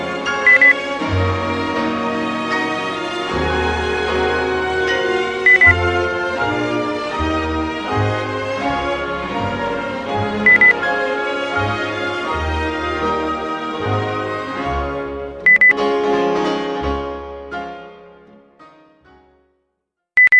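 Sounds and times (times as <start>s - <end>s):
classical piano concerto: 0.0s - 19.4s.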